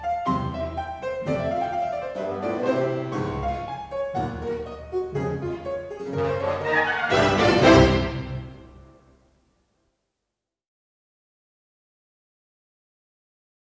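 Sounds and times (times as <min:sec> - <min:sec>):
polka music: 0:00.0 - 0:09.1.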